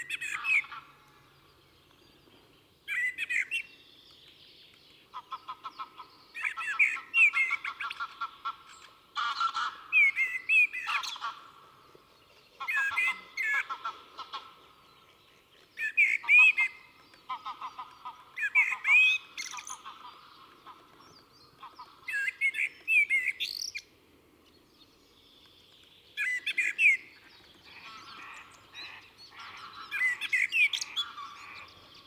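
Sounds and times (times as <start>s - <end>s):
common blackbird singing: 0.0s - 7.7s, 14.8s - 23.9s, 24.5s - 32.0s
other birds chirping: 0.0s - 32.0s.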